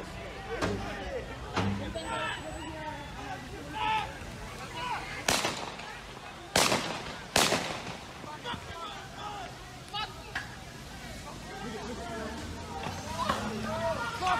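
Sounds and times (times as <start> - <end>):
people talking: 0.0 - 14.3
AR-15 rifle gunfire: 5.3 - 5.9, 6.6 - 8.2.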